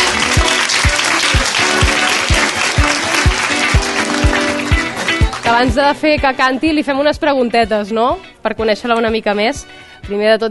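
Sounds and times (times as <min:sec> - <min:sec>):
audience applause: 0:00.0 - 0:05.6
speech: 0:05.6 - 0:10.4.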